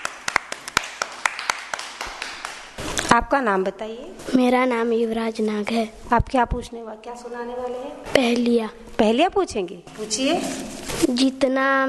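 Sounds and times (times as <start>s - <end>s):
small audience clapping: 0.0s - 2.8s
speech: 3.1s - 11.8s.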